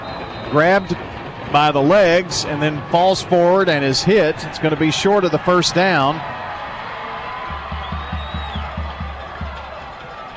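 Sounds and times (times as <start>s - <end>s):
speech: 0.5s - 6.4s
crowd cheering and shouting from a football sideline: 1.6s - 10.3s
heavy drum beats: 7.4s - 9.9s.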